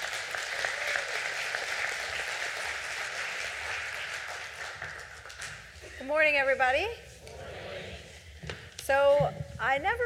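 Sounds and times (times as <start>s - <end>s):
church congregation applauding to welcome a speaker: 0.0s - 5.8s
speech: 6.1s - 7.1s, 8.9s - 10.0s.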